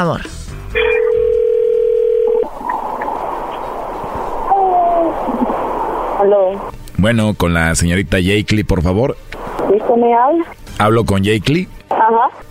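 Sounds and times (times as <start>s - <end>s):
speech: 0.0s - 0.4s, 6.2s - 12.5s
telephone dial tone: 0.8s - 2.5s
hissy crackling telephone line: 0.8s - 6.7s.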